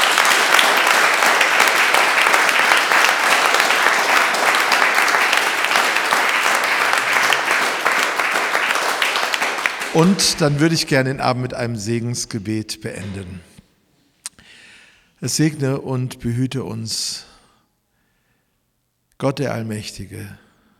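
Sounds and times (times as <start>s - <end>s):
audience clapping: 0.0s - 11.1s
speech: 10.0s - 13.5s, 15.2s - 17.3s, 19.2s - 20.4s.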